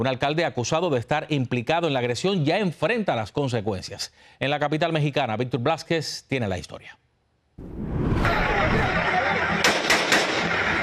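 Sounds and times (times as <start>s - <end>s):
speech: 0.0s - 7.0s, 7.6s - 9.0s
roaring noise: 7.6s - 9.2s
laughter: 8.2s - 10.8s
assault rifle shots fired into the air in Oaxaca, Mexico: 9.6s - 10.5s.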